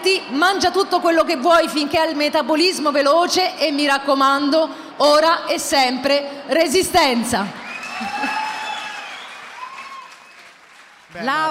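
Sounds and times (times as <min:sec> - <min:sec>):
speech: 0:00.0 - 0:08.4, 0:11.1 - 0:11.5
audience applause at a stage event: 0:07.9 - 0:11.5.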